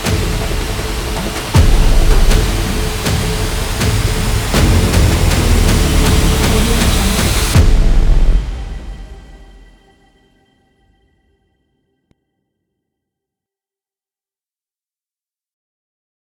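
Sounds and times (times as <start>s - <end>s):
tense documentary music: 0.1s - 10.1s.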